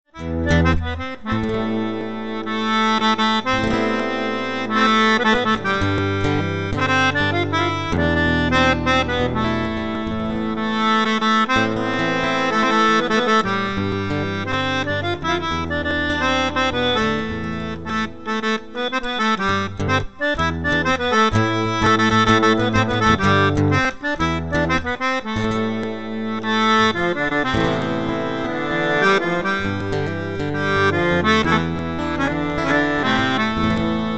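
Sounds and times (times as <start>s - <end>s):
gavotte dance music for a bal: 0.2s - 34.1s.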